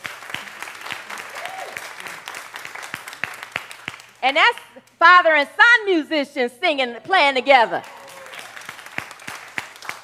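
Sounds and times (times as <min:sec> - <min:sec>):
audience applause for musicians: 0:00.0 - 0:04.2, 0:07.8 - 0:10.0
speech: 0:04.2 - 0:07.9.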